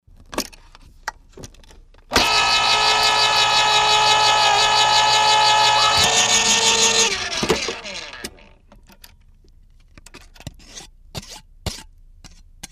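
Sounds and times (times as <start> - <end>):
can opener opening and scraping a can: 2.2 - 8.5.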